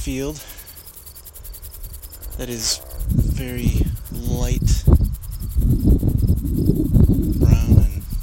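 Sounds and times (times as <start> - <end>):
speech: 0.0 - 0.6, 2.4 - 5.0, 6.7 - 7.1
crickets chirping: 0.0 - 8.2
low wind rumble: 0.0 - 8.2.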